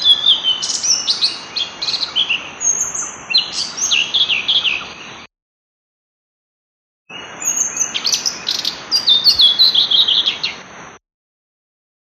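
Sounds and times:
blue-throated flycatcher song: 0.0 - 5.2, 7.1 - 10.7.

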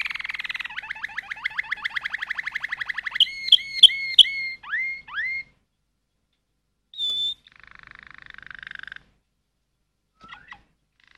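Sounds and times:
Waterslager canary song: 0.0 - 5.6, 6.9 - 9.2, 10.2 - 11.1.

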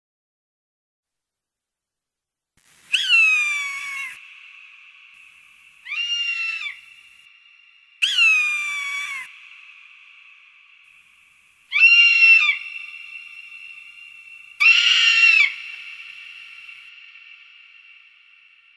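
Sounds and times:
Red-tailed hawk giving rasping downslurred screams: 2.9 - 4.2, 5.8 - 6.9, 8.0 - 9.4, 11.7 - 16.9.

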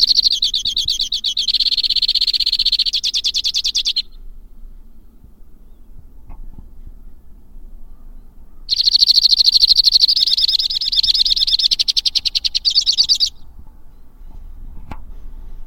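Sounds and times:
white-winged crossbill delivering rapid high rattling trills: 0.0 - 4.2, 7.9 - 14.0.

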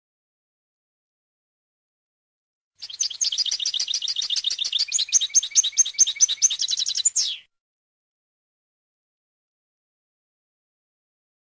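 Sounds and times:
European goldfinch twittering song: 2.8 - 7.5.

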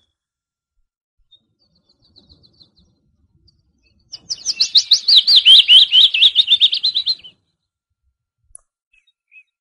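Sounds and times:
great tit song repeated bright notes: 4.2 - 7.3.

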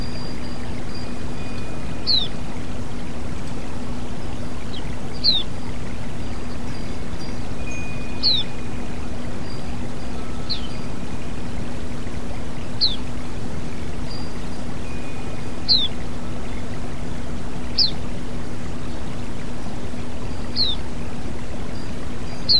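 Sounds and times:
female white-eye chirping calls: 0.0 - 22.5.

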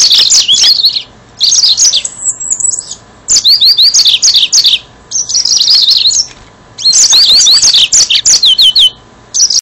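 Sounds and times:
yellow-fronted canary singing: 0.0 - 9.6.

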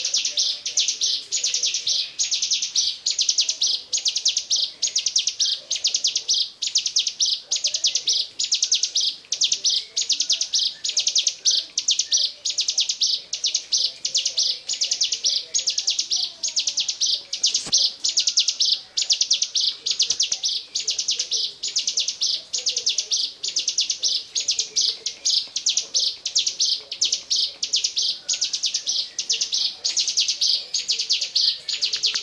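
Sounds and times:
Bar-winged prinia pulsed chattering song: 0.0 - 32.2
faint clicks: 31.9 - 32.2.

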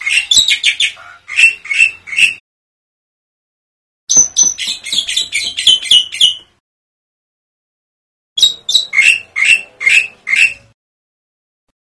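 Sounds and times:
black-winged myna chirping: 0.0 - 2.4, 4.1 - 6.6, 8.4 - 10.8.

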